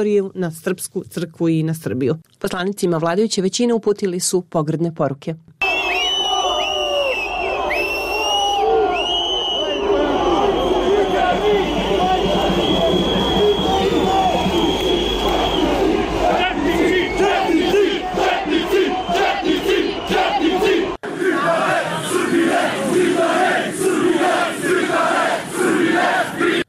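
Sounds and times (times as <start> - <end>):
speech: 0.0 - 5.6
crowd cheering and shouting for opposition MPs outside parliament: 5.6 - 26.6.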